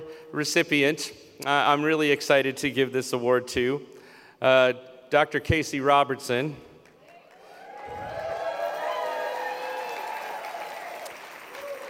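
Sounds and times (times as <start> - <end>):
speech: 0.3 - 6.7
audience applause: 7.1 - 11.8.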